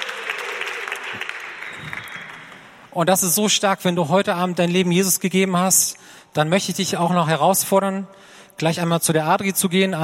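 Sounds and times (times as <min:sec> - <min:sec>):
church congregation applauding: 0:00.0 - 0:03.0
speech: 0:02.9 - 0:10.0.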